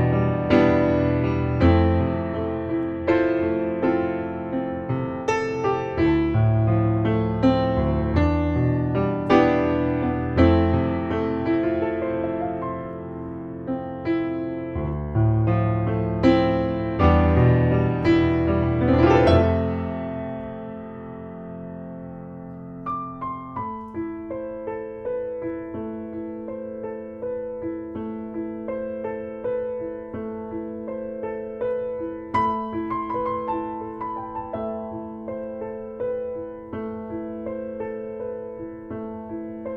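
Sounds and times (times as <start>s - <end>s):
piano solo: 0.0s - 39.7s.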